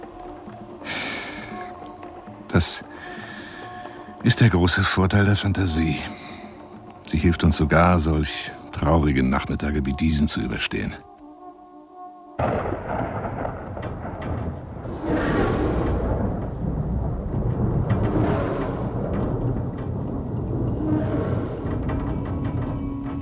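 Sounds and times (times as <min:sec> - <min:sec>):
rain: 0:00.0 - 0:05.0, 0:12.4 - 0:23.1
speech: 0:02.5 - 0:03.2, 0:04.2 - 0:06.2, 0:07.1 - 0:11.1
thunder: 0:12.4 - 0:23.1.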